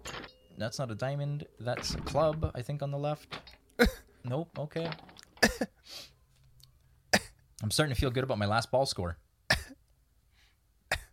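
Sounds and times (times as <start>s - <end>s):
speech: 0.6s - 6.1s, 7.6s - 9.2s
person coughing: 3.8s - 4.1s, 5.4s - 5.8s, 7.2s - 7.4s, 9.5s - 9.8s, 10.9s - 11.1s.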